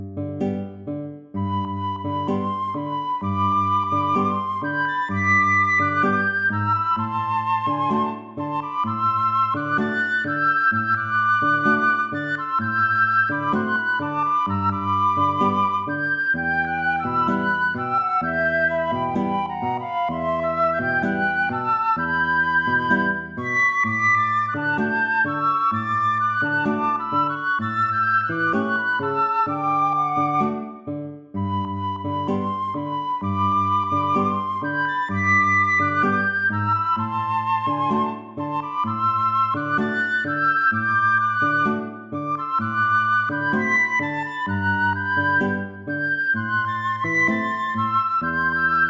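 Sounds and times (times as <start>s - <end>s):
tango music: 0.2s - 48.8s.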